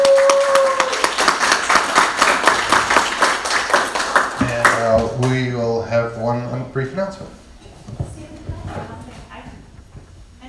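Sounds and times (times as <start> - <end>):
audience round of applause: 0.0 - 5.4
speech: 6.7 - 7.4.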